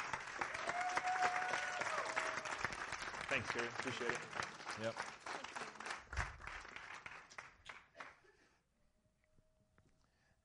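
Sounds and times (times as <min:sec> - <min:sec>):
audience cheering and whooping: 0:00.0 - 0:03.5
audience applause: 0:00.0 - 0:08.2
speech: 0:03.3 - 0:05.2.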